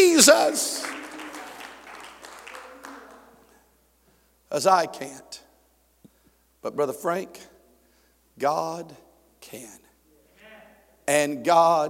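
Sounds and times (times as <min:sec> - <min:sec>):
speech: 0:00.0 - 0:00.8, 0:04.5 - 0:05.4, 0:06.6 - 0:07.5, 0:08.4 - 0:09.8, 0:11.1 - 0:11.8
audience clapping hands: 0:00.0 - 0:03.6.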